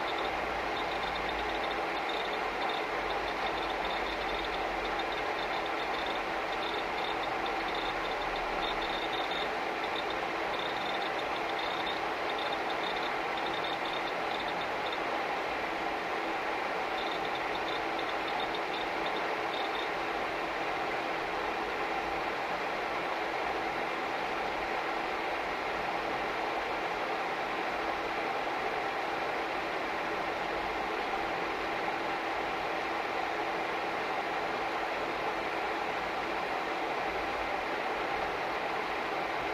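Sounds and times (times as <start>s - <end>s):
computer turning on: 0.0s - 15.0s
computer fan noise: 0.0s - 39.5s.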